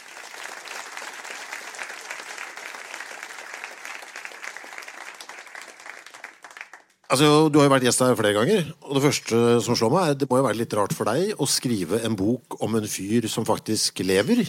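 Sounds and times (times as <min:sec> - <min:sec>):
audience applause: 0:00.0 - 0:07.1
speech: 0:07.1 - 0:14.4.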